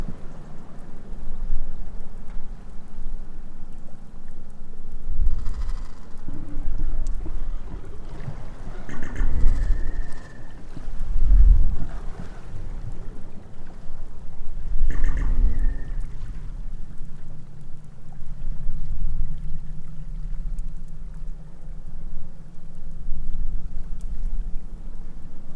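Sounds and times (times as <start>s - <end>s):
minke whale making low pulsed sounds: 0.0s - 25.5s.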